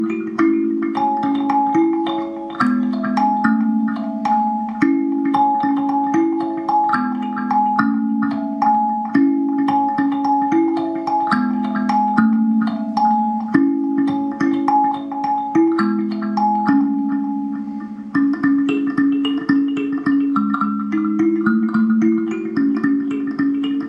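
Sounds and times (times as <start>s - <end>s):
kalimba: 0.0s - 23.8s.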